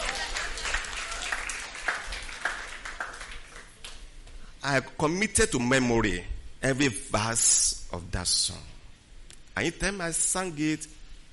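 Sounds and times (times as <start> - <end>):
crowd applause: 0.0 - 4.0
speech: 4.6 - 8.7, 9.6 - 11.0.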